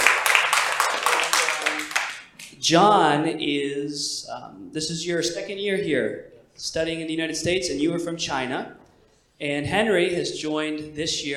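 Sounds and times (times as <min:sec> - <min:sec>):
audience clapping: 0:00.0 - 0:02.5
speech: 0:02.6 - 0:08.8, 0:09.4 - 0:11.3.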